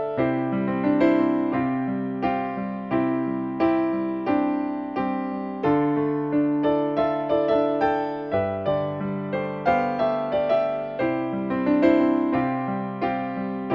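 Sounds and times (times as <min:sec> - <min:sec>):
solo piano playing: 0:00.0 - 0:13.7.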